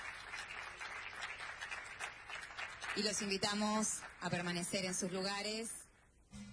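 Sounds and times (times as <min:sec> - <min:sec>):
audience applause: 0:00.0 - 0:04.2
speech: 0:03.0 - 0:05.8.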